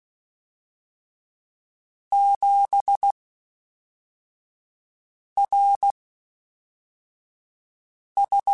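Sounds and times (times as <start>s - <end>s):
Morse code beeps: 2.1s - 3.1s, 5.4s - 5.9s, 8.2s - 8.5s.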